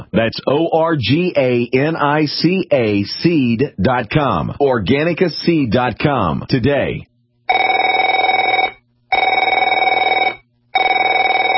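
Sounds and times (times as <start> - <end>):
speech: 0.2 - 7.6
telephone ringing with a bright electronic warble: 7.5 - 11.5.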